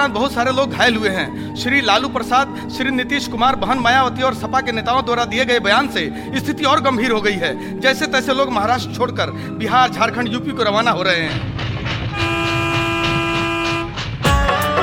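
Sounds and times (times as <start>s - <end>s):
speech: 0.0s - 12.4s
passenger train arriving at station: 11.2s - 14.7s.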